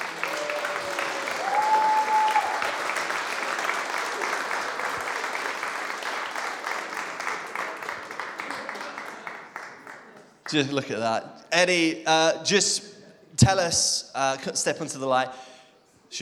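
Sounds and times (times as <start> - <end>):
audience applause: 0.0 - 10.5
speech: 10.5 - 15.5.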